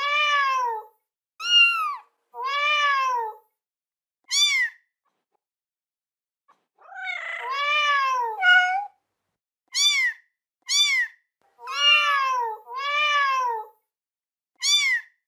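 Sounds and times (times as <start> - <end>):
kitten meowing: 1.4 - 3.4, 4.3 - 4.7, 6.8 - 8.9, 9.8 - 13.7, 14.6 - 15.1.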